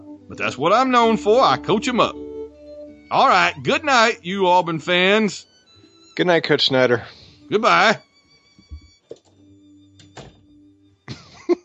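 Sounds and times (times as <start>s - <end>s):
speech: 0.3s - 2.2s, 3.1s - 5.5s, 6.2s - 8.1s
door closing: 8.6s - 10.7s
laughter: 11.1s - 11.6s.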